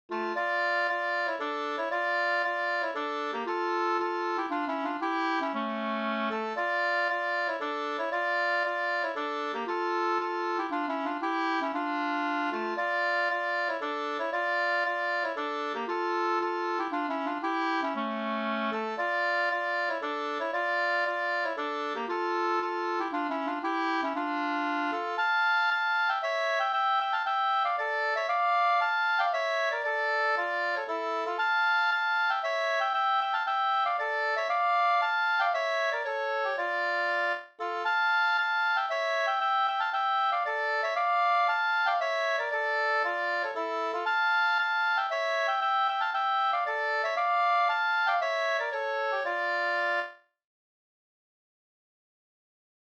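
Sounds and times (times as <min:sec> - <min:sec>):
polska folk dance tune: 0:00.0 - 0:50.2.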